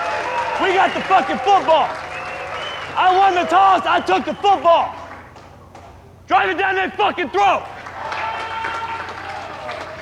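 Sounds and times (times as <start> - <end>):
applause: 0.0 - 3.5, 7.7 - 10.0
speech: 0.6 - 2.0, 2.9 - 5.0, 6.3 - 7.7.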